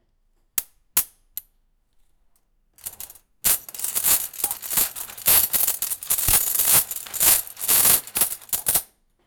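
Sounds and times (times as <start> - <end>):
blacksmith workshop: 2.8 - 8.8.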